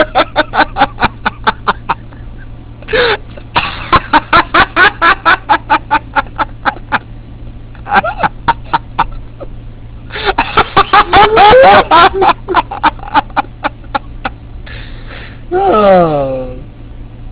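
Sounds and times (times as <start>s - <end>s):
person laughing: 0.0s - 7.0s, 7.8s - 9.5s, 10.1s - 14.4s.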